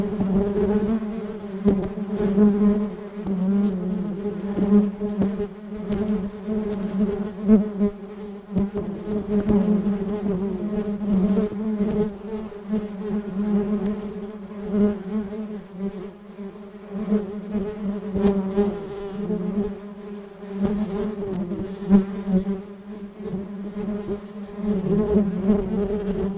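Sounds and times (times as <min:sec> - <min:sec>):
bees humming: 0:00.0 - 0:26.3.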